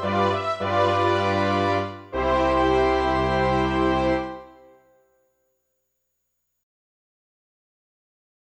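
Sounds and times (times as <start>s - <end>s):
horns playing a wedding march: 0.0s - 4.8s.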